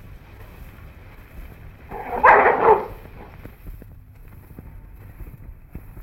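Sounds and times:
wolf howling while attacking prey: 1.9s - 3.3s.

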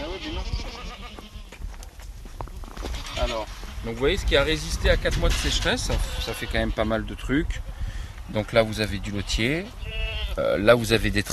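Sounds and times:
goats and sheep bleating in a pasture: 0.0s - 1.6s, 2.8s - 3.5s, 5.9s - 7.2s, 9.3s - 10.6s
speech: 3.3s - 7.7s, 8.3s - 11.3s.

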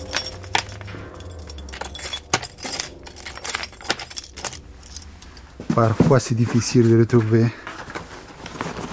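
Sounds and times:
keys jangling as a secret key is brought out to open a safe: 0.0s - 5.6s
speech: 5.8s - 7.6s.

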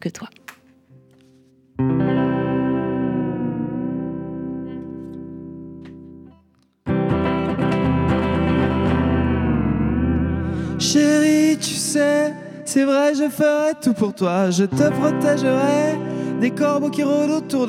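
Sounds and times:
speech: 0.0s - 0.4s, 12.7s - 17.6s
electric guitar chords with an effects-laden tone: 0.9s - 17.6s.

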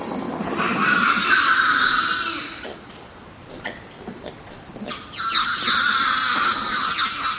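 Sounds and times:
flock of birds calling and singing at night: 0.5s - 2.6s, 4.9s - 7.3s.

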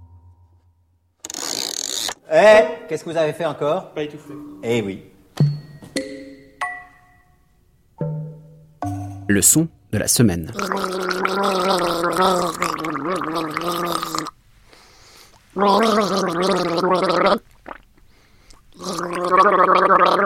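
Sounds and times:
speech: 2.3s - 5.1s, 9.3s - 14.3s, 15.6s - 17.4s
gargling water in the throat: 10.5s - 14.4s, 15.6s - 17.9s, 18.7s - 20.2s.

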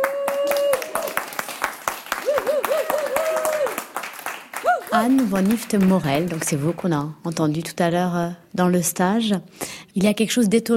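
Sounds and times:
group applauding: 0.0s - 6.9s
speech: 5.0s - 10.7s.

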